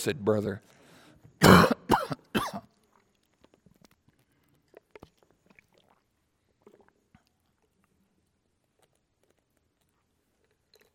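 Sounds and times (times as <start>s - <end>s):
person sneezing: 1.4s - 2.6s.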